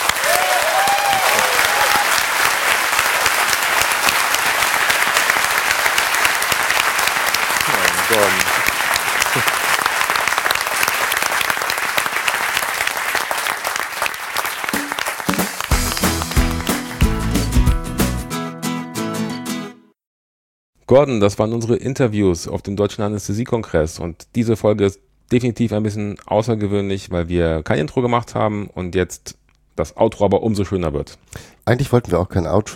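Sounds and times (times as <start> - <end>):
audience applause: 0.0 - 18.2
speech: 8.1 - 8.5, 20.9 - 32.7.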